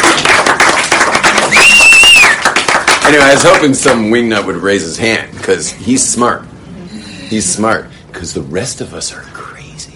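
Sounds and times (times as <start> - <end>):
group clapping: 0.0 - 4.5
thin high whistling tone: 1.5 - 2.4
speech: 3.1 - 6.6, 7.3 - 9.5.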